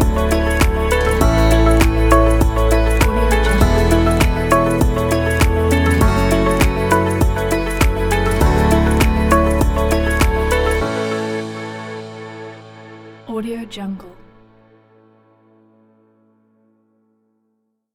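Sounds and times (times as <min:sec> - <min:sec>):
happy and uplifting presentation music: 0:00.0 - 0:14.1.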